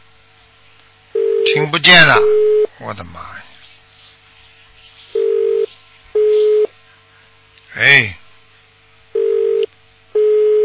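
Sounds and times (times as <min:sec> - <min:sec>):
faint line hum: 0:00.0 - 0:10.6
speech: 0:01.6 - 0:03.5, 0:07.8 - 0:08.2
telephone line beeping: 0:05.2 - 0:06.7, 0:09.2 - 0:10.6.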